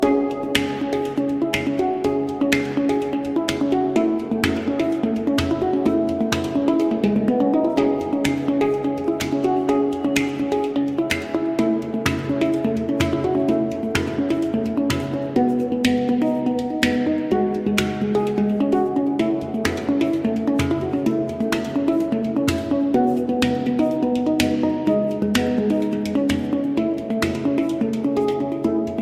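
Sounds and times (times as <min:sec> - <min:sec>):
handpan playing: 0:00.0 - 0:29.0.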